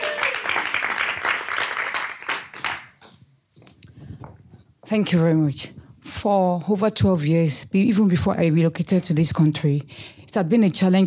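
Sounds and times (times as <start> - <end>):
audience applause: 0.0 - 3.1
speech: 4.9 - 11.0.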